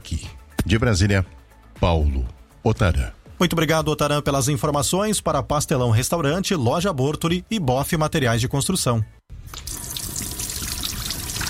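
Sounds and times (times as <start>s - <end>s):
speech: 0.7s - 9.8s
water running from a sink tap: 9.5s - 11.4s.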